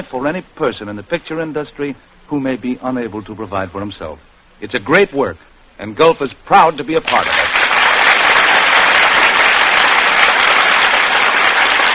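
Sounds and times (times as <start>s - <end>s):
speech: 0.0s - 7.6s
large studio audience applause: 7.0s - 11.9s.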